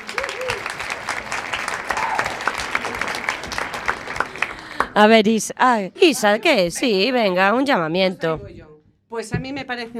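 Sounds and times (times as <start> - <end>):
audience applause: 0.0 - 5.0
speech: 5.0 - 9.9.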